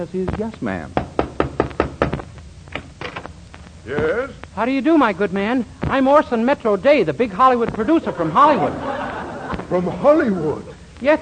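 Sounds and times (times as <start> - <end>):
speech: 0.0 - 1.0, 3.9 - 8.9, 9.6 - 11.1
knocking on the door of the Middletown Little Theater League: 1.0 - 3.2
laughter: 7.8 - 10.7.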